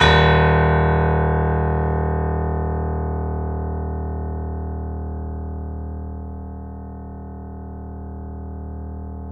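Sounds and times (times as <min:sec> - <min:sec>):
piano note D sharp: 0:00.0 - 0:07.2.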